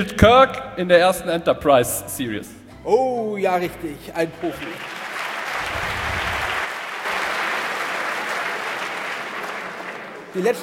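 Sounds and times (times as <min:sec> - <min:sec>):
speech: 0:00.0 - 0:05.0, 0:10.3 - 0:10.6
studio audience applause at a geek-trivia quiz show: 0:04.3 - 0:10.6.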